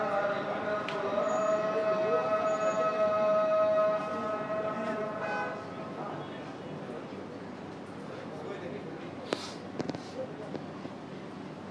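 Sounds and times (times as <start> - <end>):
call to prayer: 0.0 - 6.2.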